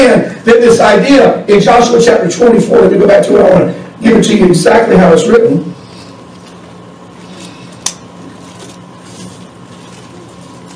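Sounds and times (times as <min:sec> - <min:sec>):
speech: 0:00.0 - 0:05.8
electrical hum: 0:00.0 - 0:10.7
paper pages turning: 0:08.2 - 0:10.7.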